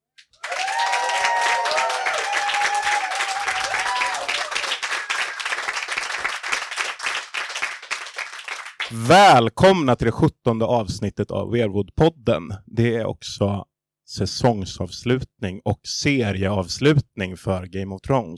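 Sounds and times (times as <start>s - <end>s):
audience applause: 0.3s - 9.0s
whoops and cheers: 0.4s - 5.7s
speech: 8.9s - 18.3s.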